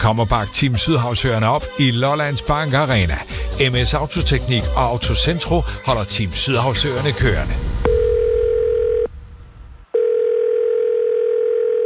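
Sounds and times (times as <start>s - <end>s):
speech: 0.0s - 7.7s
telephone line tone while waiting in queue: 7.9s - 9.1s, 9.9s - 11.8s.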